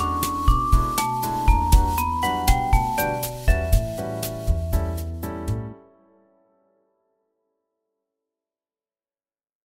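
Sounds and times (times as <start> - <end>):
bossa nova music: 0.0 - 5.8.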